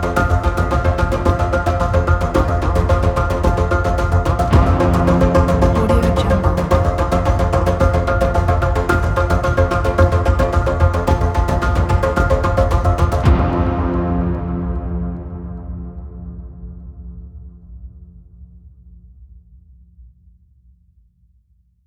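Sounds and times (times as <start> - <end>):
tense action music: 0.0 - 17.4.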